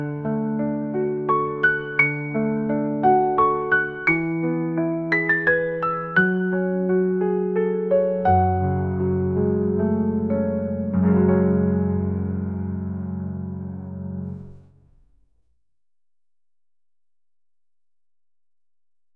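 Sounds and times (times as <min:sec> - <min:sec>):
piano intro: 0:00.0 - 0:15.3.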